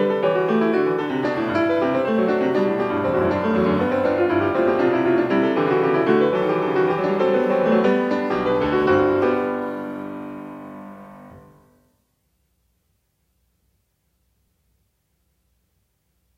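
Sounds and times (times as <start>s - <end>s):
keyboard gigue: 0.7s - 11.4s.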